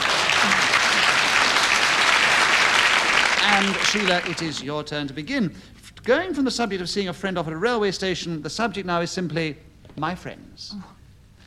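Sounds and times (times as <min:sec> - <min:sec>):
spontaneous round of audience applause: 0:00.0 - 0:04.6
speech: 0:03.5 - 0:11.0.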